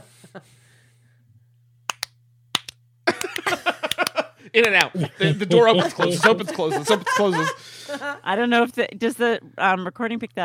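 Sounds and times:
speech: 0.4 - 0.6, 4.5 - 10.4
hand claps: 1.9 - 4.9
laughter: 3.1 - 8.2.

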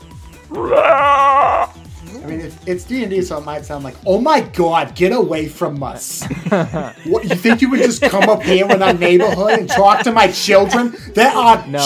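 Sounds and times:
speech: 0.5 - 1.1, 2.6 - 11.8
person imitating a mother bear roar: 0.5 - 1.7
laughter: 6.1 - 11.8.

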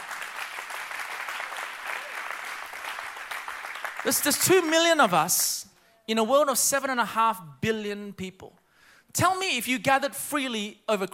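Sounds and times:
audience clapping: 0.0 - 5.6
speech: 4.0 - 11.1.

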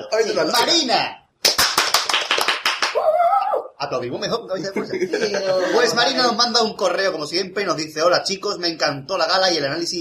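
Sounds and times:
speech: 0.2 - 1.2, 3.8 - 9.9
hand clapping: 1.4 - 3.0
laughter: 4.6 - 6.3.

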